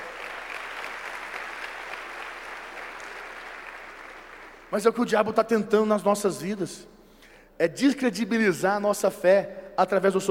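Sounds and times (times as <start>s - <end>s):
audience applauding loudly: 0.0s - 4.9s
speech: 4.7s - 7.0s, 7.6s - 10.2s.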